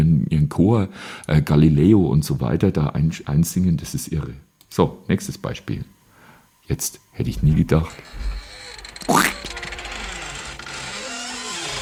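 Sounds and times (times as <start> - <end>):
speech: 0.4 - 6.0, 6.7 - 8.4
loud creak: 7.3 - 11.8.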